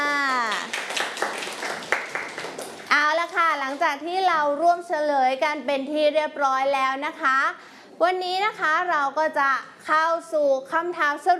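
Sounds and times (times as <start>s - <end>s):
children clapping for classmates during a lesson: 0.2s - 3.8s
speech: 3.8s - 11.3s.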